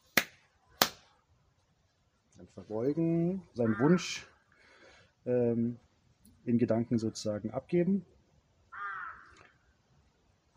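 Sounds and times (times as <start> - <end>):
hand claps at shrine prayer: 0.0 - 1.0
speech: 2.4 - 4.3, 5.2 - 5.8, 6.4 - 8.2.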